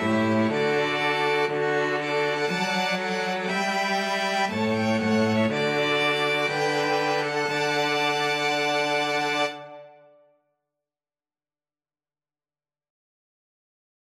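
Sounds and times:
string quartet: 0:00.0 - 0:10.0.

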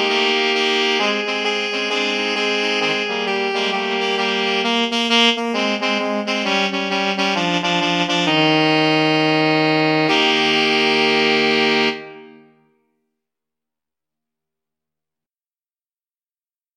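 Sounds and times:
alto sax quartet playing a boogie: 0:00.0 - 0:12.6.

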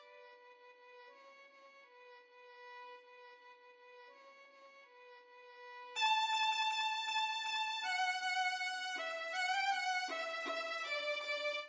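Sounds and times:
violin duet playing a march: 0:06.0 - 0:11.6.

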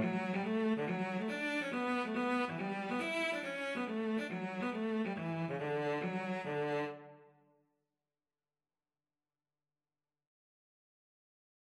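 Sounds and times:
hornpipe played on cello: 0:00.0 - 0:07.2.

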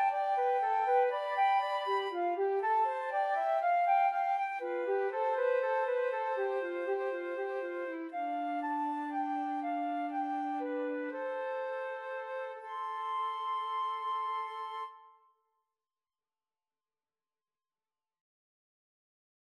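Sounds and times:
flute trio playing dances: 0:00.0 - 0:15.2.

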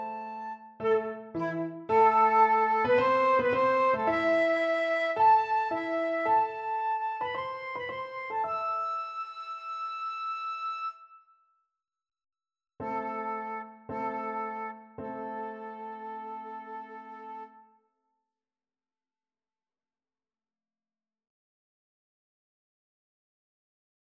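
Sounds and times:
flute prelude: 0:00.0 - 0:11.4, 0:12.8 - 0:17.8.

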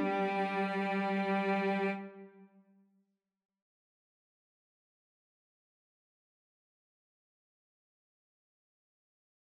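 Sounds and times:
string quartet: 0:00.0 - 0:02.4.

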